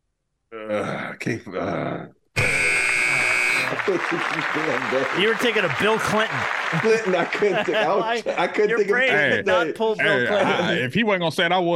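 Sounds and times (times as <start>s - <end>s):
speech: 0.5s - 2.2s, 3.7s - 11.7s
buzzer buzzing a contestant out: 2.4s - 3.8s
laughter: 3.6s - 10.9s.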